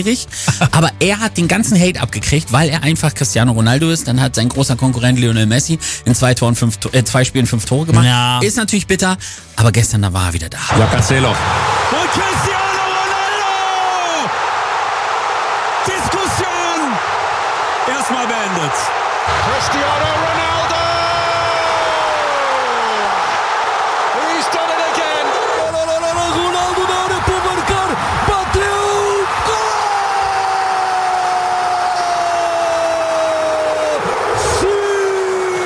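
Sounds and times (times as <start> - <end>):
speech: 0.0 - 12.6, 19.6 - 20.6
huge stadium crowd roaring a goal chant: 10.7 - 35.6.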